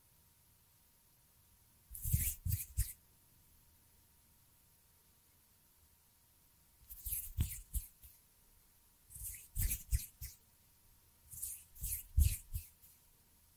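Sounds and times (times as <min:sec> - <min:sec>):
faint steady tone: 0:00.0 - 0:13.5
fingers fluttering and brushing: 0:01.9 - 0:03.0, 0:06.9 - 0:08.2, 0:09.1 - 0:10.4, 0:11.3 - 0:13.0.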